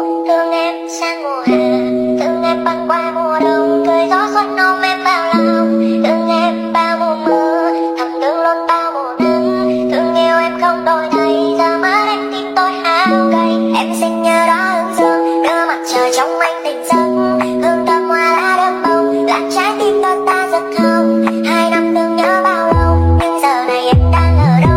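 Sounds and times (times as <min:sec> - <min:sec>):
lofi music: 0:00.1 - 0:24.7.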